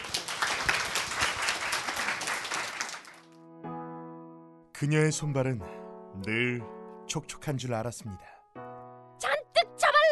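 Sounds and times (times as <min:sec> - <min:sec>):
audience applause: 0:00.0 - 0:03.4
speech: 0:04.8 - 0:08.3.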